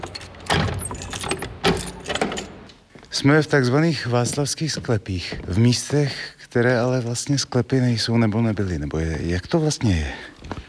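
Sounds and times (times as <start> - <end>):
door lock clicking and clunking as it is unlocked: 0.0 - 2.8
keys jingling: 0.0 - 2.9
speech: 3.2 - 10.3.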